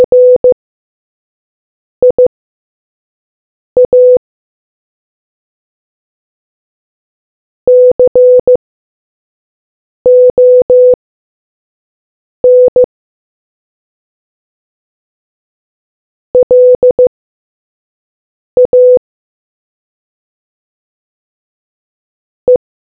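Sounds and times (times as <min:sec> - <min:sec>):
morse code beeps: 0:00.0 - 0:00.6, 0:02.0 - 0:02.2, 0:03.8 - 0:04.2, 0:07.7 - 0:08.6, 0:10.1 - 0:11.0, 0:12.4 - 0:12.9, 0:16.4 - 0:17.1, 0:18.6 - 0:19.0.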